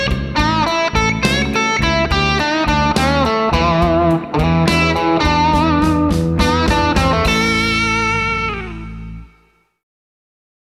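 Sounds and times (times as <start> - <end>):
blues guitar solo: 0.0 - 9.7.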